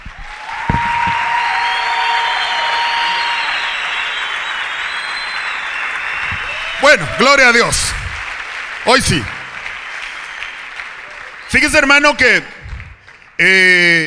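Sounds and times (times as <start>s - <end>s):
applause from audience: 0.0s - 13.4s
faint whistle-like tone: 2.4s - 6.8s
speech: 6.8s - 8.0s, 8.8s - 9.4s, 11.5s - 12.5s, 13.4s - 14.0s.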